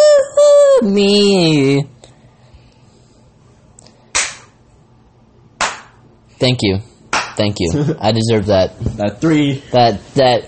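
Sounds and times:
speech: 0.8 - 2.0, 6.4 - 10.4
hand claps: 4.1 - 4.6, 5.6 - 6.0, 7.1 - 7.4.

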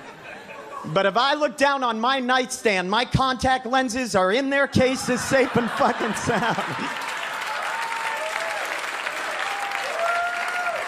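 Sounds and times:
laughter: 0.0 - 1.1, 4.8 - 7.4
speech: 0.8 - 7.1
audience applause: 5.4 - 10.8
high sliding whoops: 6.8 - 10.8.

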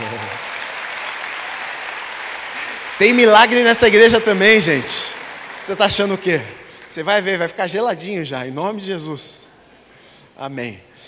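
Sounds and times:
church congregation applauding: 0.0 - 8.4
speech: 3.0 - 9.5, 10.4 - 11.0.

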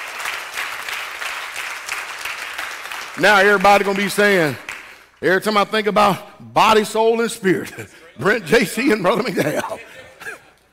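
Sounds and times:
audience hand clapping: 0.0 - 5.2
speech: 3.2 - 4.6, 5.2 - 10.0
laughter: 7.6 - 10.7.

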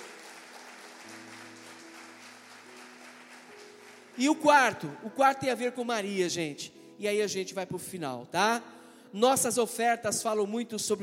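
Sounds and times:
audience applause: 0.0 - 4.4
speech: 4.2 - 11.0.

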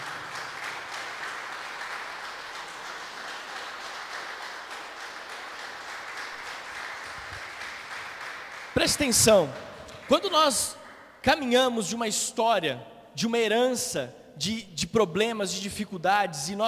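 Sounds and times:
audience applauding: 0.0 - 10.3
speech: 8.8 - 16.6.

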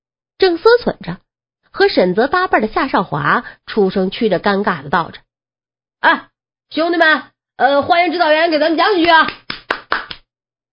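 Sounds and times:
speech: 0.6 - 1.2, 1.9 - 5.2, 6.0 - 9.4
single person's sparse hand claps: 9.0 - 10.3.

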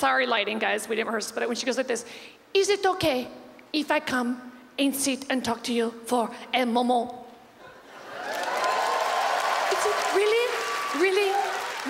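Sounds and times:
speech: 0.0 - 7.2, 11.0 - 11.8
audience clapping: 8.0 - 11.8.

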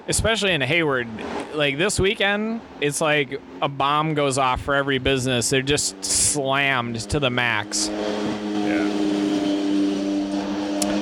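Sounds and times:
speech: 0.0 - 9.1
sport motorcycle engine revving: 5.4 - 11.0.

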